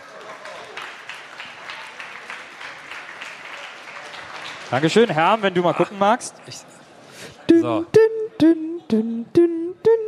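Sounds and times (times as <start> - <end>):
crowd clapping: 0.0 - 6.1
speech: 4.7 - 9.6.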